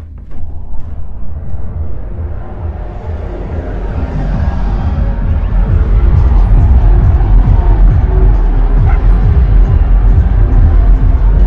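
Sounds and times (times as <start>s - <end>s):
electronic dance music with heavy thumping bass outside window: 2.0s - 11.4s
crowd-like noise: 2.3s - 11.4s.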